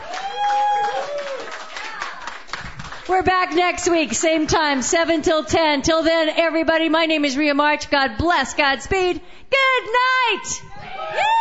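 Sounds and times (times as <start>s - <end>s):
voices whooping and cheering: 0.0s - 2.2s, 10.7s - 11.3s
audience clapping: 0.0s - 5.2s
speech: 3.1s - 11.3s.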